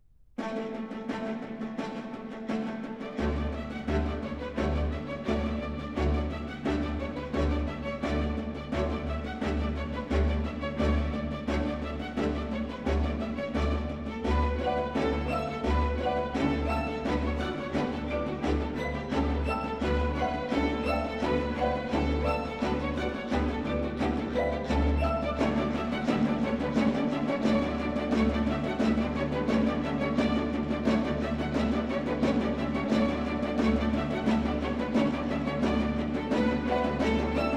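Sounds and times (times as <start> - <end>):
ballet music for strings and percussion: 0.4 - 37.5.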